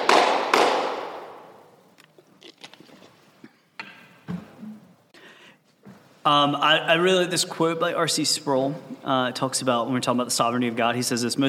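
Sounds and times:
hand clap for audio sync: 0.0 - 1.6
speech: 6.3 - 11.4.

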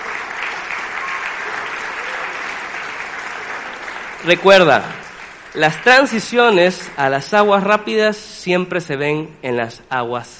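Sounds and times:
audience applause: 0.0 - 7.0
speech: 4.2 - 10.3.

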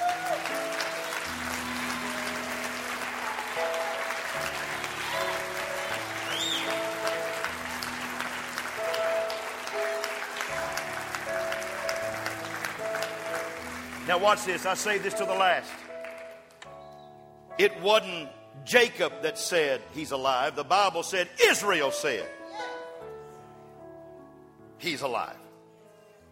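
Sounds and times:
people clapping: 0.0 - 16.7
speech: 14.1 - 15.9, 17.6 - 22.4, 24.8 - 25.4.

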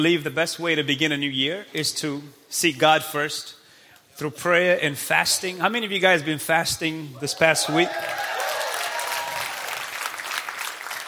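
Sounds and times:
speech: 0.0 - 3.6, 4.2 - 8.3
soft audience applause: 7.7 - 11.0.

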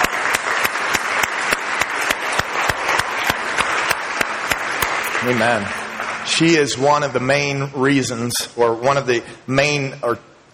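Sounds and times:
audience applause: 0.0 - 7.6
loud rhythmic claps: 0.0 - 7.8
speech: 5.2 - 10.5.

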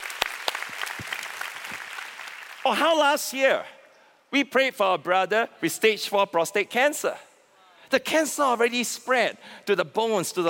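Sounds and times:
audience applause: 0.0 - 2.8
speech: 2.6 - 7.3, 7.9 - 10.4.

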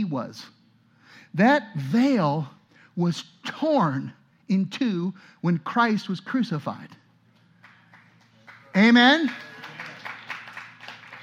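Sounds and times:
speech: 0.1 - 0.6, 1.2 - 7.0, 8.8 - 9.5
few people clapping: 7.4 - 11.2.

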